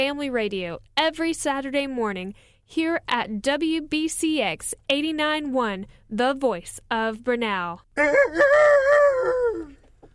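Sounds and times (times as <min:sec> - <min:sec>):
speech: 0:00.0 - 0:09.8
rooster crowing: 0:08.0 - 0:09.8.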